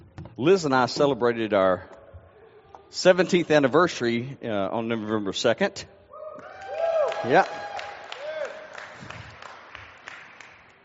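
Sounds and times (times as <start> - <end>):
speech: 0.4 - 1.9, 2.9 - 6.0, 7.2 - 7.6
audience clapping: 6.5 - 10.8.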